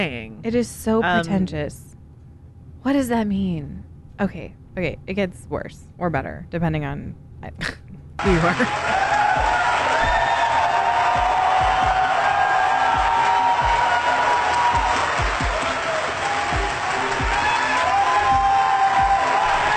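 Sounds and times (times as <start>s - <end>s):
speech: 0.0s - 1.9s, 2.8s - 9.1s
audience applause and cheering: 8.2s - 19.7s.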